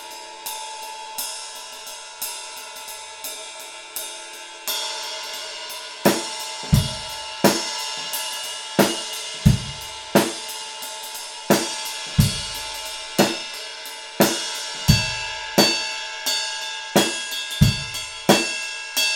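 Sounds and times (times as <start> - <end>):
ride cymbal ping: 0.0 - 19.1.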